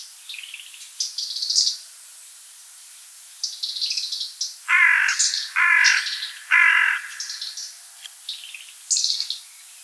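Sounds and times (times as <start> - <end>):
European robin singing warbled phrases with whistles and trills: 4.7 - 9.4.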